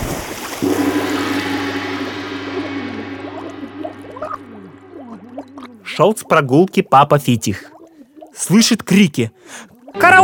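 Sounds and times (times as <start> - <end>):
splash of something plunging into river water: 0.0 - 2.2
river water bubbling and gurgling: 0.0 - 10.2
low steady hum: 0.6 - 8.5
speech: 6.0 - 7.8, 8.4 - 10.2.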